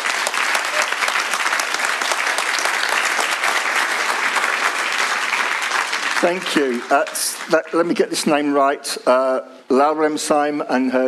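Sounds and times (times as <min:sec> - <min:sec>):
audience applause welcoming newcomers: 0:00.0 - 0:08.2
speech: 0:06.2 - 0:11.0.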